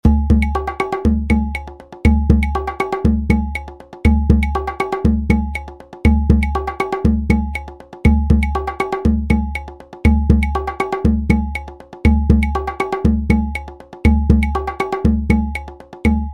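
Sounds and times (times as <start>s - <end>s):
nyabinghi drumming: 0.0s - 16.3s.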